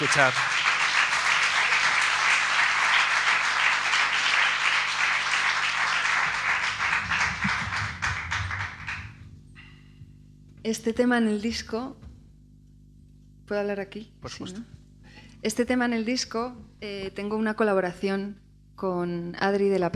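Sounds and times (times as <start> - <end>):
speech: 0.0 - 0.6, 10.7 - 12.0, 13.5 - 14.8, 15.4 - 19.9
audience applause: 0.0 - 9.3.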